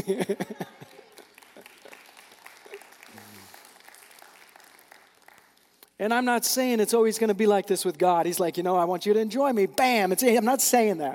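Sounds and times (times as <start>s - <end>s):
speech: 0.0s - 0.8s, 6.0s - 11.1s
audience clapping: 0.0s - 6.0s.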